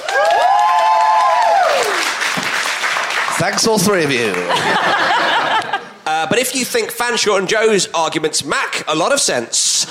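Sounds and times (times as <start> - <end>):
audience applause: 0.0 - 5.7
speech: 3.4 - 9.8
laughter: 4.2 - 6.1.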